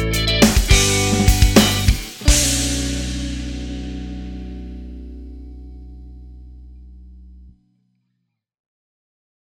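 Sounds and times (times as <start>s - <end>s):
drum kit: 0.0s - 5.4s
rock fusion music: 0.0s - 6.5s.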